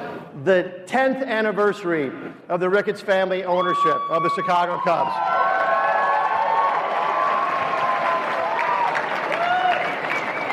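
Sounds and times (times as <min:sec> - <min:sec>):
speech: 0:00.4 - 0:05.4
crowd applauding: 0:05.0 - 0:10.5.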